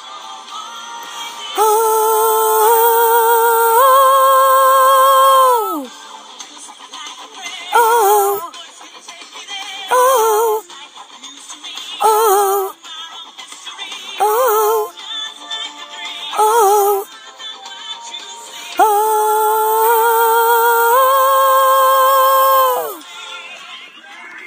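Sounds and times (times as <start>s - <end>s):
voice singing ooh a third above: 1.5s - 6.0s, 7.7s - 8.6s, 9.9s - 10.7s, 12.0s - 12.8s, 14.2s - 15.0s, 16.2s - 17.2s, 18.6s - 23.1s.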